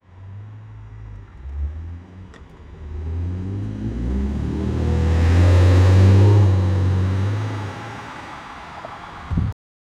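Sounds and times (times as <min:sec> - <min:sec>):
old battered car: 0:00.0 - 0:09.5.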